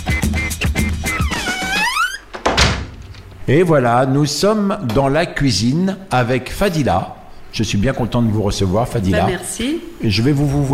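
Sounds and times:
door closing: 0.4 - 3.5
speech: 3.5 - 10.7.

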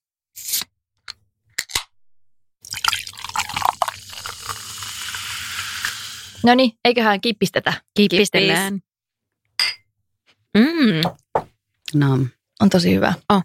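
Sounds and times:
Somersby Apple Light cider being poured into a glass: 2.6 - 6.1
speech: 6.4 - 8.9, 10.6 - 11.2, 11.9 - 13.4.

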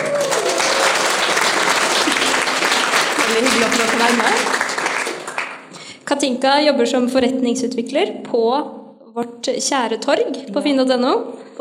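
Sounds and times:
audience applause: 0.0 - 5.9
speech: 3.4 - 4.6, 6.1 - 11.5.

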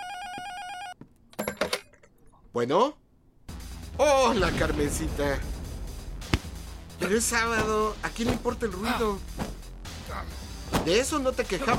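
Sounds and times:
telephone ringing: 0.0 - 1.8
speech: 2.6 - 3.0, 4.0 - 5.5, 7.0 - 9.4, 10.8 - 11.7.

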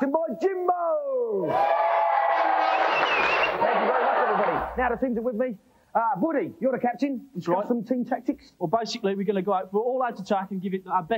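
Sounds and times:
speech: 0.0 - 1.8, 4.8 - 11.1
audience cheering and whooping: 1.4 - 4.8.

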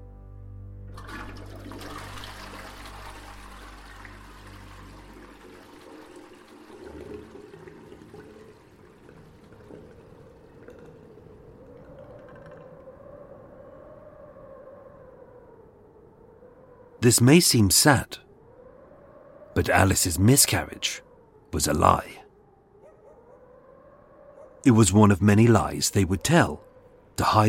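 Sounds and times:
toilet flushing: 1.0 - 10.6
speech: 17.0 - 18.2, 19.6 - 22.2, 24.6 - 27.4.

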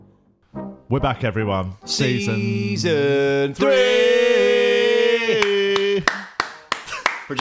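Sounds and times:
speech: 0.9 - 4.5
hands clapping: 5.3 - 7.3.

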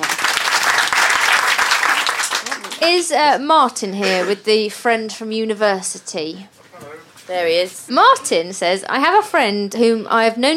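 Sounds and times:
audience applause: 0.0 - 3.0
speech: 2.8 - 10.5.

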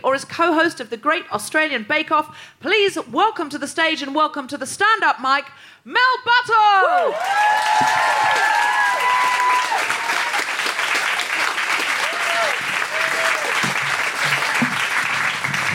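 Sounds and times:
speech: 0.0 - 10.0
audience applause: 7.0 - 15.7.

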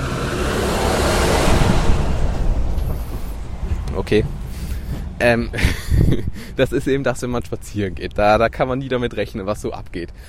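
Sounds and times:
truck driving past: 0.0 - 6.6
speech: 4.1 - 4.4, 5.2 - 10.2
laughter: 5.4 - 6.5.

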